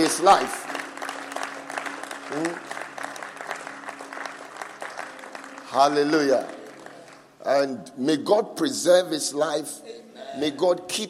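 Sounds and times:
audience clapping: 0.0 - 7.4
speech: 0.1 - 0.7, 2.3 - 2.7, 5.7 - 6.6, 7.4 - 11.0.

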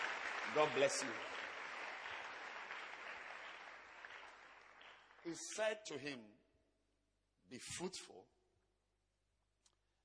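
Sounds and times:
audience applause: 0.0 - 5.7
speech: 0.5 - 1.3, 5.2 - 6.4, 7.5 - 8.3.

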